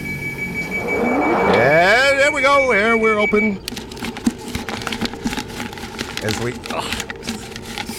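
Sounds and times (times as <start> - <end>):
pneumatic tube whooshing: 0.3 - 2.0
speech: 2.6 - 3.8, 6.2 - 7.1.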